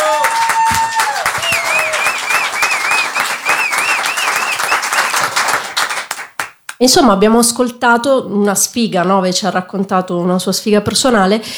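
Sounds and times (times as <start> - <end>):
audience applause: 0.0 - 6.6
speech: 6.8 - 11.5.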